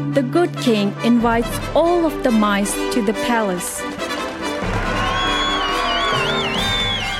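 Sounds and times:
speech: 0:00.2 - 0:03.9
street crowd applauding and cheering: 0:03.9 - 0:07.1.

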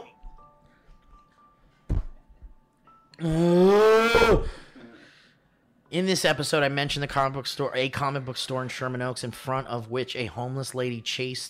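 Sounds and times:
speech: 0:03.2 - 0:03.7, 0:04.3 - 0:04.6, 0:05.9 - 0:11.4
loud gulp while drinking: 0:03.2 - 0:05.0.

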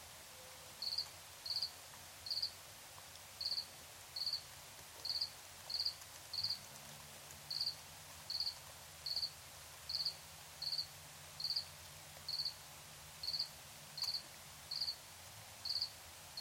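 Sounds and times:
soft constant hiss: 0:00.0 - 0:16.4
cricket chirping: 0:00.8 - 0:01.7, 0:02.3 - 0:02.5, 0:03.4 - 0:04.4, 0:05.0 - 0:06.6, 0:07.5 - 0:09.3, 0:09.9 - 0:11.7, 0:12.3 - 0:12.6, 0:13.2 - 0:15.0, 0:15.6 - 0:16.4.

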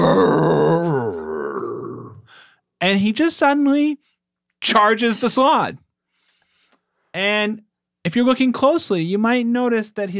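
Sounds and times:
man imitating a bear roar: 0:00.0 - 0:02.3
speech: 0:02.8 - 0:05.8, 0:07.1 - 0:10.1.

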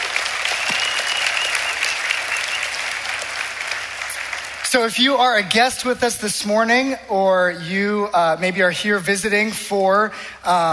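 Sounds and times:
audience applause for graduates: 0:00.0 - 0:04.7
speech: 0:04.7 - 0:10.7.

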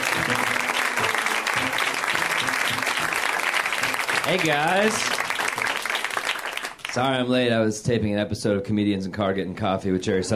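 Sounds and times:
audience applause for a comedian: 0:00.0 - 0:07.2
speech: 0:00.2 - 0:00.6, 0:04.3 - 0:05.2, 0:06.9 - 0:10.3.

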